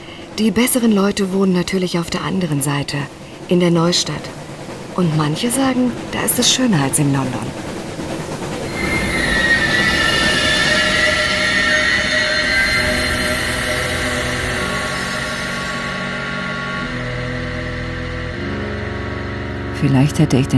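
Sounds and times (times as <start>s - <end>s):
broad rumbling roar of an arriving train: 0.0s - 20.5s
speech: 0.4s - 4.4s, 5.0s - 7.7s, 19.8s - 20.5s
arriving train wheels squealing: 8.4s - 17.0s.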